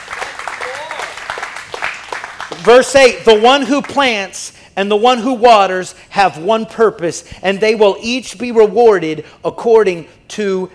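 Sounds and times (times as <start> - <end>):
scattered applause from a church congregation: 0.0 - 2.8
speech: 2.6 - 10.7.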